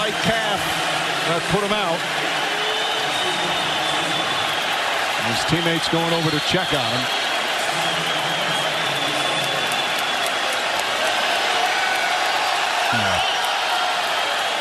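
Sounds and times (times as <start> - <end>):
arena fans cheering and applauding: 0.0 - 14.5
speech: 1.3 - 2.3, 5.2 - 7.2.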